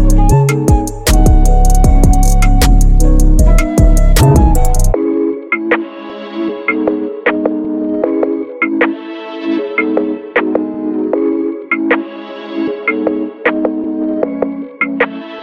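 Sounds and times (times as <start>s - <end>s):
hip hop trap beat instrumental: 0.0s - 15.4s.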